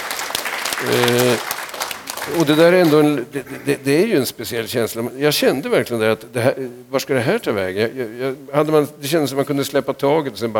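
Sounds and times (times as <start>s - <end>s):
scattered hand clapping: 0.0s - 3.2s
speech: 0.8s - 1.4s, 2.3s - 10.5s.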